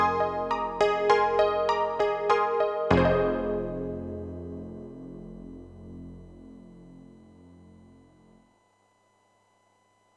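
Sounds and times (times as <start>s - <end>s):
electric grand piano: 0.0s - 8.0s.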